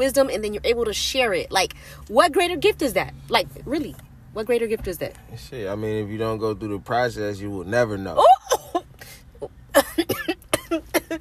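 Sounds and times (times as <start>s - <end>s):
speech: 0.0s - 8.6s
person coughing and clearing their throat: 9.7s - 11.2s.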